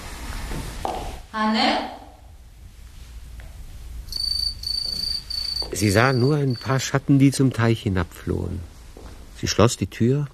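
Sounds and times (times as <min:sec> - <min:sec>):
speech: 0:00.5 - 0:02.0, 0:05.8 - 0:08.7, 0:09.4 - 0:10.3
house crickets chirping: 0:03.9 - 0:07.5.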